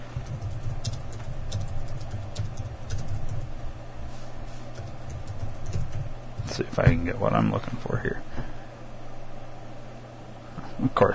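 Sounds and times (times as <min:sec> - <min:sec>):
typing on a computer keyboard: 0:00.2 - 0:03.5, 0:04.8 - 0:06.1
speech: 0:06.6 - 0:08.5, 0:10.8 - 0:11.1.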